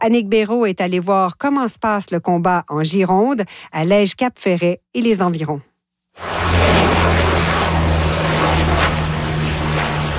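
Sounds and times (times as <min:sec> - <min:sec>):
speech: 0:00.0 - 0:06.9
Canadair water bomber aircraft propeller engines droning overhead: 0:06.2 - 0:10.1.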